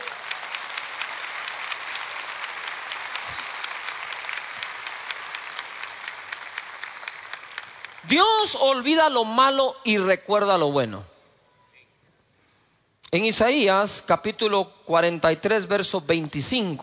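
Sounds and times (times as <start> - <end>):
audience applause: 0.0 - 8.6
speech: 8.0 - 11.1, 13.1 - 16.8.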